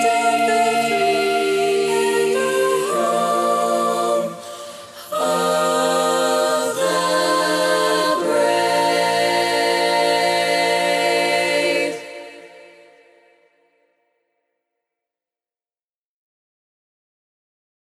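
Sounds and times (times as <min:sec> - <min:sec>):
alto voice singing a learning track: 0:00.0 - 0:13.2.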